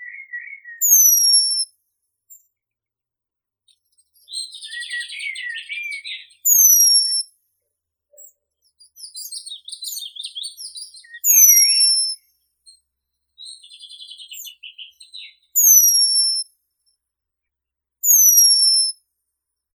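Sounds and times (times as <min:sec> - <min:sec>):
Remiz pendulinus calling: 0:00.0 - 0:01.7, 0:03.7 - 0:07.3, 0:08.1 - 0:12.8, 0:13.4 - 0:16.5, 0:18.0 - 0:19.0.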